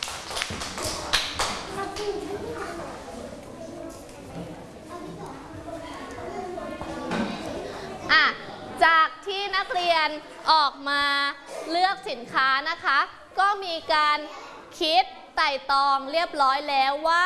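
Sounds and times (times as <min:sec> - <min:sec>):
children clapping: 0:00.0 - 0:02.2
children chattering: 0:00.7 - 0:17.2
speech: 0:10.0 - 0:17.2.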